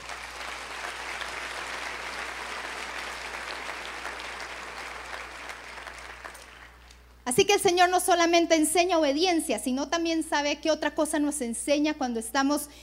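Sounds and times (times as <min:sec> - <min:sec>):
audience applause: 0:00.0 - 0:06.9
speech: 0:07.3 - 0:12.8.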